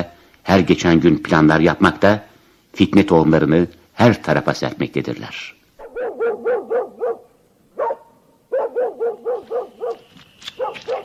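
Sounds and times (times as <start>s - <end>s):
speech: 0.0s - 5.6s
dog barking: 5.8s - 11.0s.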